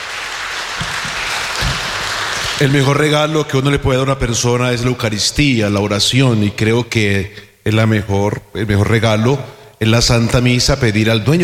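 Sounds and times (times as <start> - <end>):
audience applause: 0.0 - 3.1
speech: 2.6 - 11.4.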